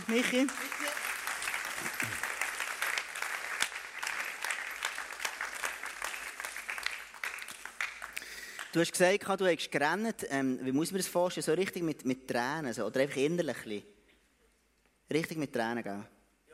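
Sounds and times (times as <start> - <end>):
audience applause: 0.0 - 8.7
speech: 0.1 - 0.8, 8.7 - 14.0, 15.1 - 16.2.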